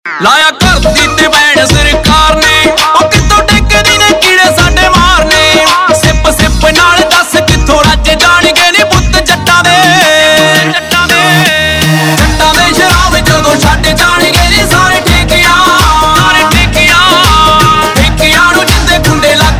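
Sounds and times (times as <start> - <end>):
Punjabi pop ringtone: 0.1 - 19.5.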